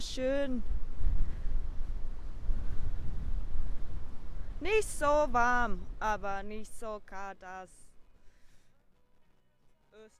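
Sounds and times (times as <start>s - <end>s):
strong wind blowing: 0.0s - 7.0s
speech: 0.2s - 0.8s, 4.6s - 7.8s, 10.0s - 10.1s.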